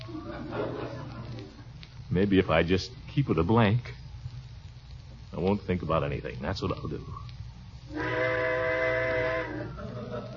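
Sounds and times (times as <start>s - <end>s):
laughter: 0.0s - 1.7s, 9.5s - 10.3s
speech: 2.2s - 4.0s, 5.4s - 7.3s, 7.9s - 8.4s
train whistle blowing: 7.9s - 9.8s.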